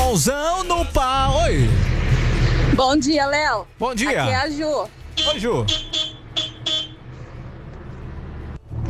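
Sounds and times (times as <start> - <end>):
speech: 0.1 - 1.7, 2.8 - 6.0
steady low engine rumble: 0.9 - 3.8, 4.5 - 8.8
truck horn honking: 5.1 - 7.1.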